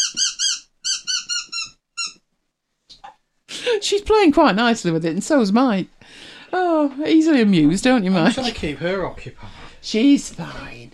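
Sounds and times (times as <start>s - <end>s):
squeaky chicken dog toy squeaking: 0.0s - 2.2s
speech: 3.7s - 10.9s.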